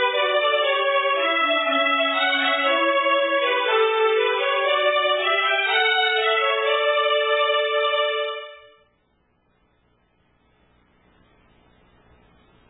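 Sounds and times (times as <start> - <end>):
wedding march music: 0.0 - 8.9.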